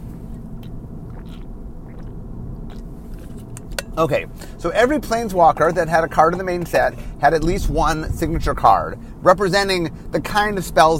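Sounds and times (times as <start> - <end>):
person taking a drink: 0.4 - 4.6
speech: 4.0 - 10.9.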